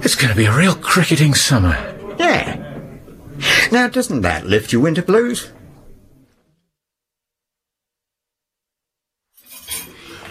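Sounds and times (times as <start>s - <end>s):
speech: 0.0s - 2.6s, 3.4s - 5.6s
crockery and cutlery clinking while loading dishwasher: 9.4s - 10.3s.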